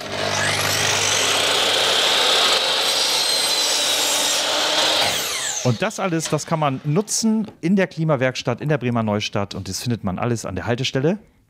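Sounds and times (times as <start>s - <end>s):
power saw cutting scrap wood: 0.0s - 7.3s
speech: 5.7s - 11.4s.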